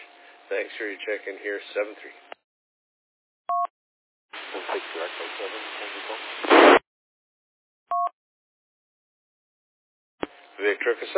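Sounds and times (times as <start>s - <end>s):
speech: 0.5s - 2.2s, 4.6s - 6.8s, 10.6s - 11.1s
short two-tone beeps: 3.5s - 3.7s
garbled voice over weak portable radio transmission: 4.4s - 6.4s
crackly radio static: 4.4s - 6.8s
loud burst of noise: 4.4s - 6.8s.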